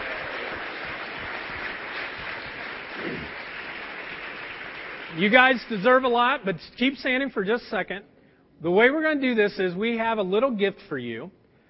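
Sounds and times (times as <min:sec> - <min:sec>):
crowd clapping: 0:00.0 - 0:06.2
speech: 0:05.2 - 0:11.4.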